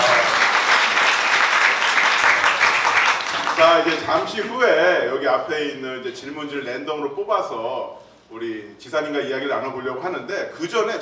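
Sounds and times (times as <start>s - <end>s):
audience applause: 0.0s - 4.0s
speech: 3.7s - 11.0s.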